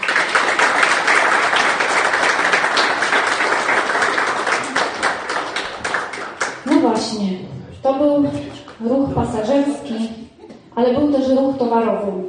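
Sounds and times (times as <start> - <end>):
crowd applauding: 0.0 - 6.9
speech: 7.2 - 10.2, 10.8 - 12.2.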